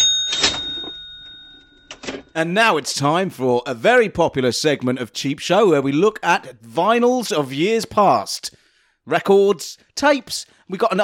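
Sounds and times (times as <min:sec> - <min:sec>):
old-fashioned cash register drawer clatter: 0:00.0 - 0:01.1, 0:01.8 - 0:02.4
old-fashioned cash register bell ringing: 0:00.0 - 0:02.4
speech: 0:02.4 - 0:11.0.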